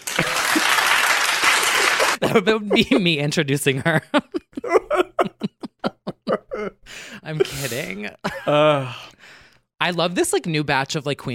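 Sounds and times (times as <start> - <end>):
crowd applause: 0.0 - 2.2
laughter: 0.0 - 8.9
speech: 2.3 - 4.7, 6.6 - 9.1, 9.8 - 11.3.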